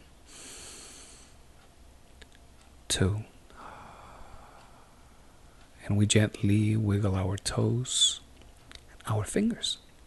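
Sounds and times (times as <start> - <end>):
deep inhaled breath during a guided relaxation session: 0.3 - 1.4, 3.5 - 5.2
speech: 2.9 - 3.3, 5.9 - 8.2, 9.1 - 9.8.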